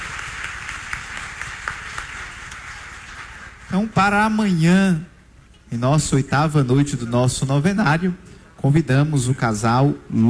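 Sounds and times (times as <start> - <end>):
audience applause: 0.0 - 3.8
speech: 3.7 - 5.1, 5.7 - 10.2.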